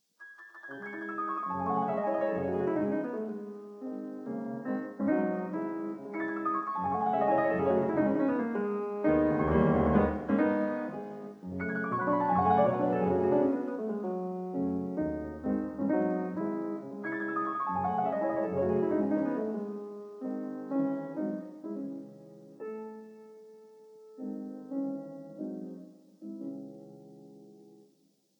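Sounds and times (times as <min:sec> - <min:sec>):
prelude: 0:00.2 - 0:21.8.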